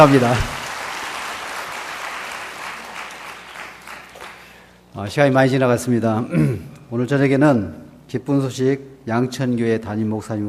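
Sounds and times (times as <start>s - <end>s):
speech: 0.0s - 0.5s, 5.0s - 10.4s
audience applause: 0.0s - 4.7s.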